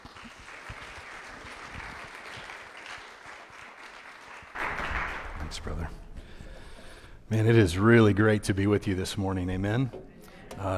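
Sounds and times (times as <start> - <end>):
church congregation applauding a guest preacher: 0.0 - 5.9
speech: 5.6 - 6.0, 7.3 - 10.0, 10.6 - 10.7.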